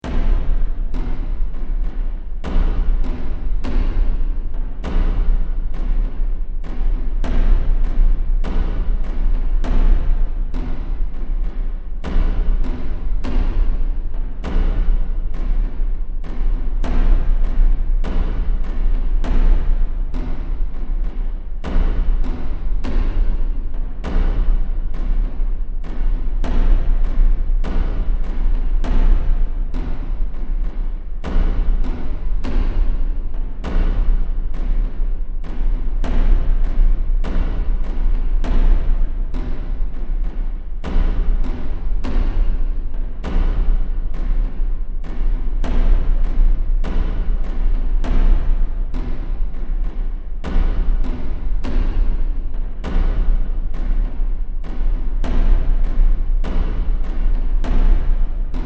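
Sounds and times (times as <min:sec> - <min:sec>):
drums in a scary soundscape: 0:00.0 - 0:58.6.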